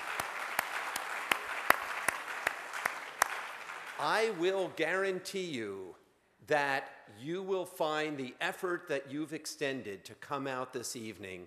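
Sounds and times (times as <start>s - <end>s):
audience applause: 0.0s - 4.5s
speech: 4.0s - 11.4s.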